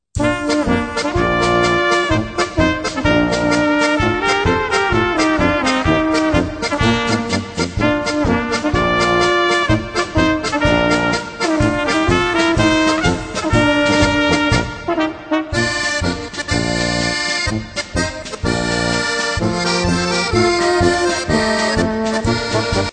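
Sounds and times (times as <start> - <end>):
instrumental polka: 0.1 - 22.9.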